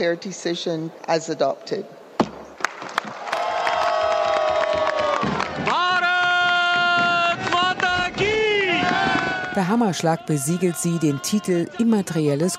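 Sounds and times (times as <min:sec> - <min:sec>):
speech: 0:00.0 - 0:02.0, 0:09.6 - 0:12.5
delegation of the Indian minister for tourism and culture cheering: 0:02.6 - 0:12.5.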